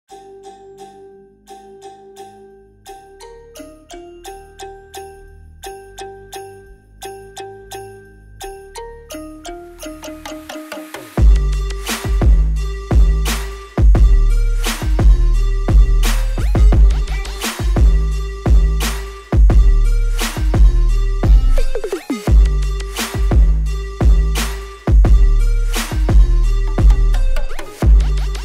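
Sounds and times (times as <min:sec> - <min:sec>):
trap remix with boosted bass: 0:09.8 - 0:28.4.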